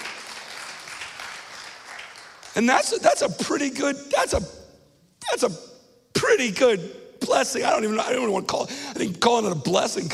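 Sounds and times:
audience clapping: 0.0s - 3.0s
speech: 2.6s - 4.6s, 5.3s - 10.1s.

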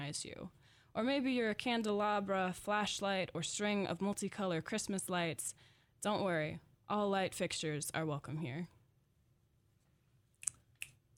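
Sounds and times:
speech: 0.1s - 8.8s
fingers snapping: 10.4s - 11.1s.

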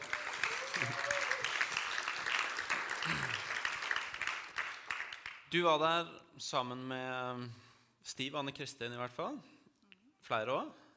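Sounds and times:
audience applause: 0.0s - 5.4s
speech: 5.5s - 9.5s, 10.2s - 10.8s.

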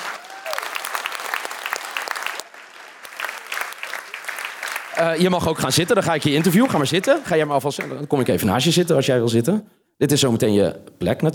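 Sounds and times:
audience applause: 0.0s - 8.0s
speech: 5.0s - 11.3s.

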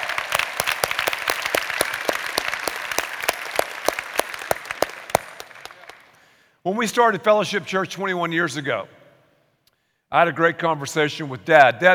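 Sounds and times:
crowd applauding: 0.0s - 6.2s
speech: 6.6s - 9.0s, 10.1s - 11.9s.

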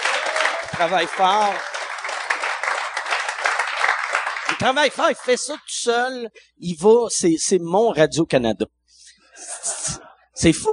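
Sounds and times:
audience applause: 0.0s - 5.6s
speech: 0.8s - 1.7s, 4.6s - 8.8s, 10.4s - 10.7s.

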